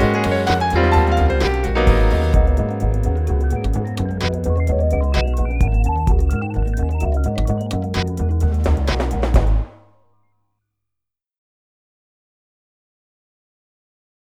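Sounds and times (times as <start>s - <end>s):
modem jazz music: 0.0s - 9.8s.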